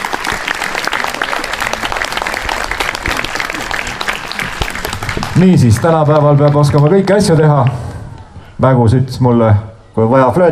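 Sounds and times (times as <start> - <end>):
audience applause: 0.0 - 7.8
speech: 5.4 - 7.9, 8.6 - 10.5.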